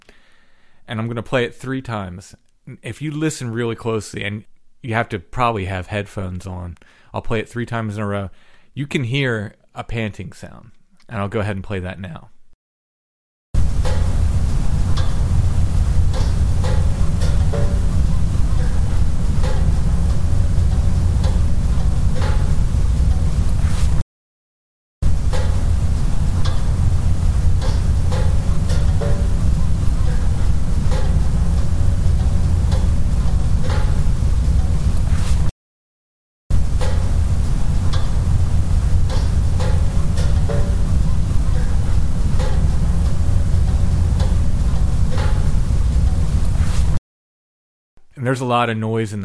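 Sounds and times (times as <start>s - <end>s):
speech: 0.9s - 12.4s, 48.3s - 49.2s
Jeep pinging: 13.6s - 23.7s, 25.0s - 35.1s, 36.5s - 46.6s.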